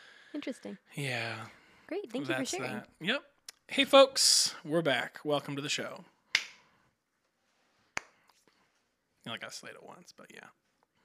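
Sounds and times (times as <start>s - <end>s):
speech: 0.3s - 6.1s, 9.2s - 10.6s
single hand clap to sync a recording: 6.3s - 6.6s.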